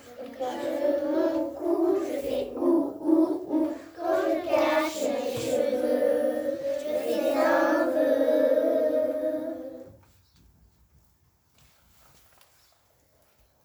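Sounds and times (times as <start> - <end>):
choir singing: 0.0 - 10.0.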